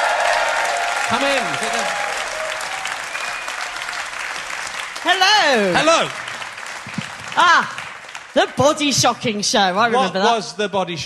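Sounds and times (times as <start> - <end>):
audience applause welcoming a guest on stage: 0.0 - 9.4
speech: 1.1 - 2.1, 5.0 - 6.2, 7.4 - 7.8, 8.4 - 11.0.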